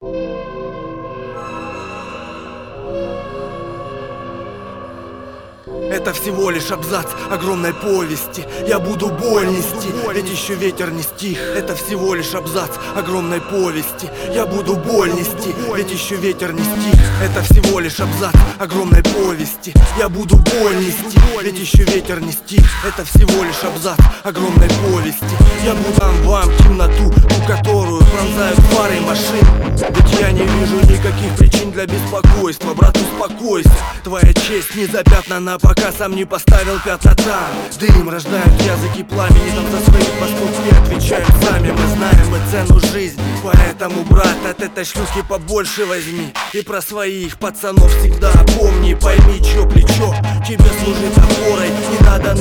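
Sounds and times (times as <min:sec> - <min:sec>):
dubstep mix: 0:05.7 - 0:52.3.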